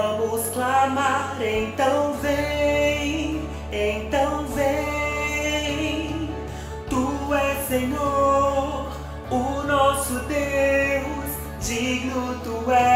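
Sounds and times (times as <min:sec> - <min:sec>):
tenor guide voice singing: 0:00.0 - 0:12.9.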